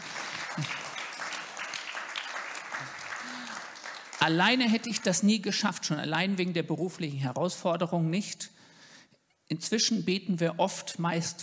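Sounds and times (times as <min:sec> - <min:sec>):
audience applause: 0:00.0 - 0:04.7
speech: 0:00.6 - 0:00.8, 0:04.2 - 0:08.5, 0:09.5 - 0:11.4.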